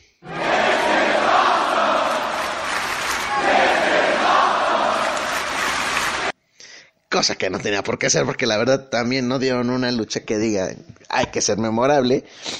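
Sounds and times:
large arena crowd chanting a shout in unison: 0.2s - 6.3s
speech: 7.2s - 12.5s.

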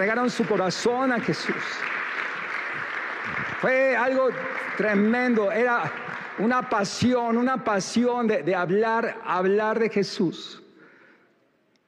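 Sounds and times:
speech: 0.0s - 2.0s, 3.3s - 10.6s
audience ovation applause: 0.0s - 7.0s.

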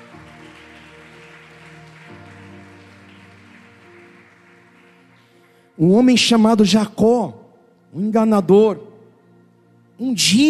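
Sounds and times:
audience applause: 0.0s - 5.7s
speech: 5.8s - 8.9s, 10.0s - 10.4s.

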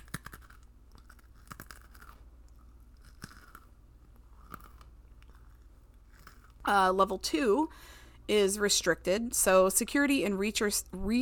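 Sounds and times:
crisp crunching and chewing of a pretzel: 0.0s - 6.7s
speech: 6.7s - 11.2s.

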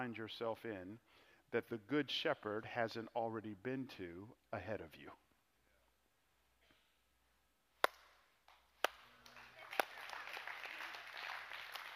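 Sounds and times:
speech: 0.0s - 5.2s
audience applause: 9.2s - 11.9s.

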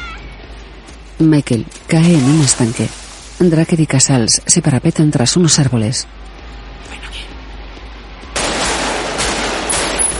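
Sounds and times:
speech: 1.2s - 6.3s
gunfire as a man opens fire in a plaza chase: 8.4s - 10.1s.

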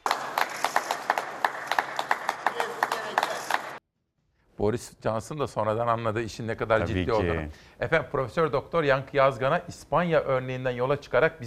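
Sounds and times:
applause for health workers: 0.0s - 3.8s
speech: 4.6s - 11.4s.

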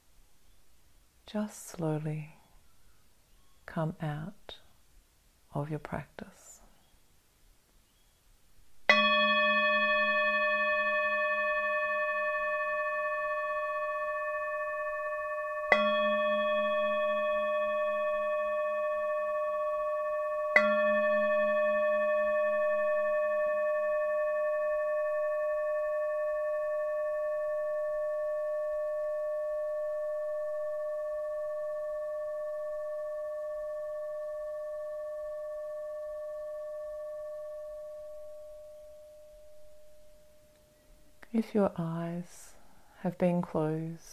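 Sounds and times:
speech: 1.3s - 2.4s, 3.7s - 4.6s, 5.5s - 6.4s, 41.4s - 44.1s
singing bowl gong: 8.9s - 40.8s.

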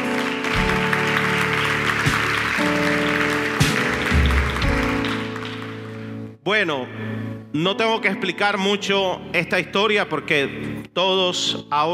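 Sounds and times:
audience applause: 0.0s - 6.1s
speech: 6.5s - 11.9s.

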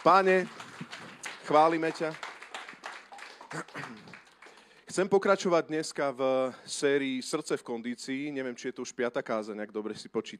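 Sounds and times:
speech: 0.0s - 0.6s, 1.5s - 2.2s, 3.5s - 4.1s, 4.9s - 10.3s
audience applause: 0.0s - 4.8s.

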